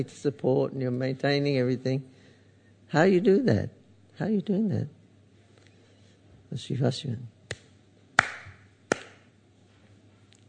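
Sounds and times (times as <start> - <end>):
speech: 0.0 - 2.2, 2.9 - 5.0, 6.5 - 7.3
hand claps: 7.5 - 9.3.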